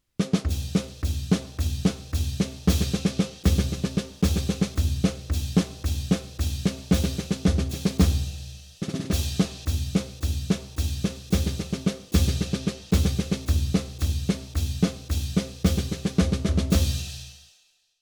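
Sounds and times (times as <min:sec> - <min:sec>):
march theme music: 0:00.3 - 0:16.9.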